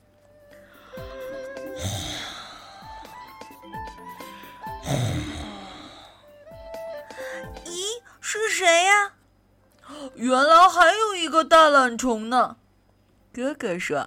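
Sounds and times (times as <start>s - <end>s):
light music: 0.0s - 12.0s
rasping snores: 1.7s - 2.6s, 4.8s - 6.2s
speech: 10.2s - 12.6s, 13.4s - 14.0s.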